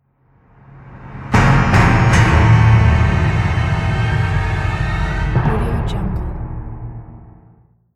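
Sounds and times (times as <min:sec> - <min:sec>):
orchestral cliffhanger sting: 0:01.4 - 0:07.4.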